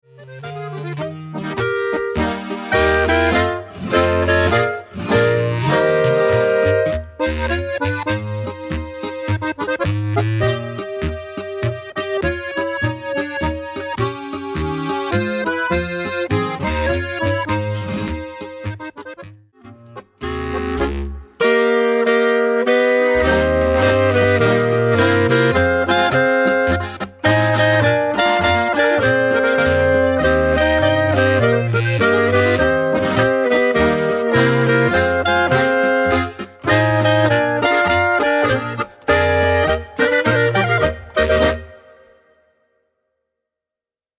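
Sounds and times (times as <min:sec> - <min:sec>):
polka music: 0:00.0 - 0:42.5.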